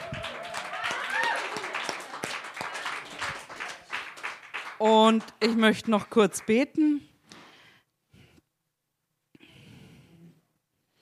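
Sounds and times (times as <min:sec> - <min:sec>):
applause: 0:00.0 - 0:06.8
speech: 0:04.8 - 0:07.1.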